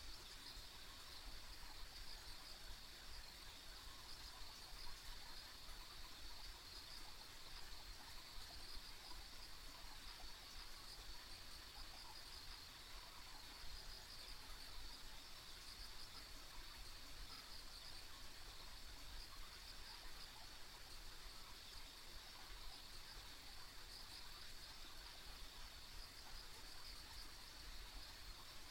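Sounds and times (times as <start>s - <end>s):
high insect chorus: 0.0s - 28.6s.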